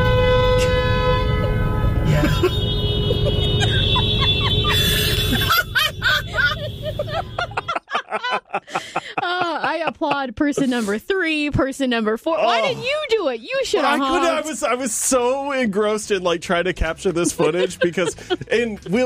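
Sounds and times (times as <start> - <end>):
car horns honking in a parking lot: 0.0 - 7.9, 17.3 - 19.0
laughter: 2.1 - 11.0, 13.7 - 14.7, 16.8 - 19.0
speech: 10.0 - 19.0.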